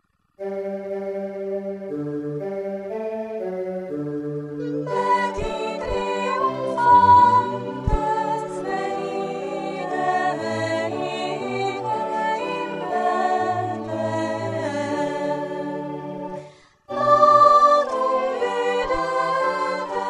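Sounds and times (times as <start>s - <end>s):
sopranos singing a Christmas carol: 4.6s - 20.0s.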